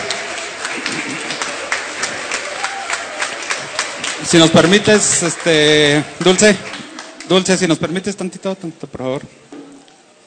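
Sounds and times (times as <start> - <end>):
audience applause after theater play: 0.0 - 8.0
speech: 4.3 - 9.4.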